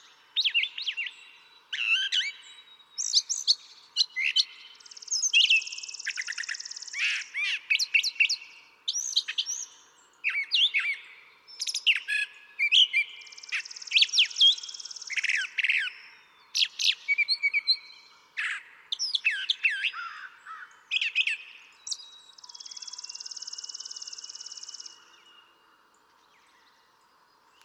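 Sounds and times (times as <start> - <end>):
brown thrasher singing: 0.0 - 27.6.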